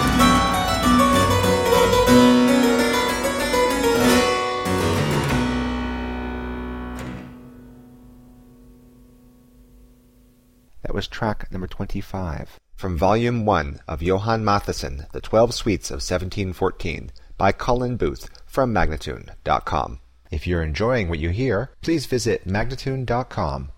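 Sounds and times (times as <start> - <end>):
classical suite courante in C minor: 0.0 - 10.6
person speaking: 10.7 - 23.7.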